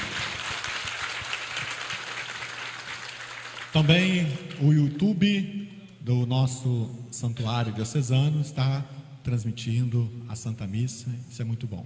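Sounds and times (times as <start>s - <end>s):
audience applauding: 0.0s - 4.6s
speech: 3.8s - 11.8s.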